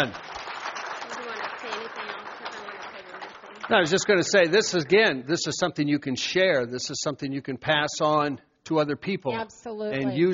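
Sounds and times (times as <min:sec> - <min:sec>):
speech: 0:00.0 - 0:00.2, 0:03.7 - 0:10.3
crowd clapping: 0:00.0 - 0:05.2.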